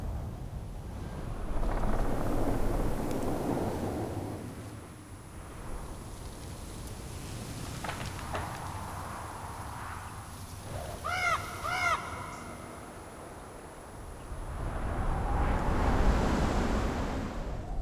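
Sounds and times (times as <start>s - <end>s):
forest ambience: 0.0s - 17.7s.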